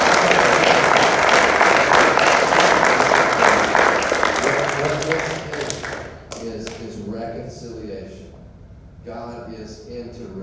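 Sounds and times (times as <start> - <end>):
audience round of applause: 0.0 - 6.8.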